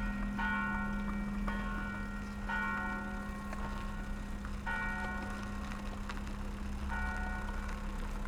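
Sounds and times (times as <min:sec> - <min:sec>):
church bells ringing in Zagreb Croatia: 0:00.0 - 0:08.1.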